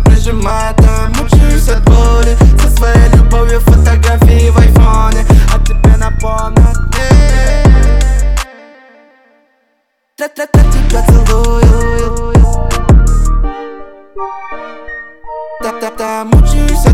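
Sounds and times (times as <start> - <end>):
trap beat: 0.0 - 8.5, 10.2 - 13.4, 15.6 - 16.9.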